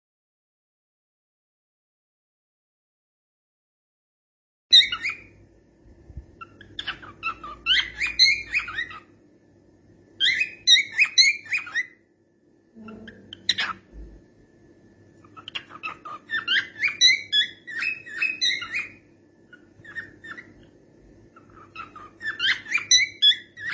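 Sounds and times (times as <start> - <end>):
cockatiel: 4.7 - 5.4, 6.1 - 9.2, 10.2 - 12.1, 12.8 - 14.2, 15.2 - 23.7.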